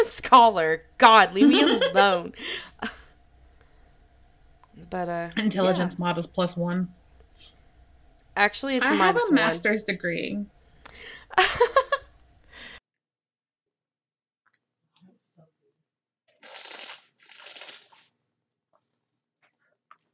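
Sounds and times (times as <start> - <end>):
speech: 0.3 - 2.9, 4.8 - 7.6, 8.4 - 10.6, 11.3 - 11.8
laughter: 1.3 - 3.0, 8.8 - 9.6, 11.3 - 12.1
loud slurp of a drink into a microphone: 16.4 - 18.1.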